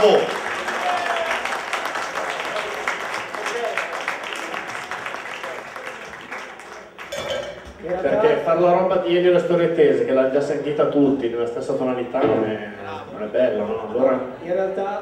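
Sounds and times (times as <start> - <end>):
speech: 0.0 - 0.4, 8.6 - 14.9
audience applause: 0.0 - 7.2.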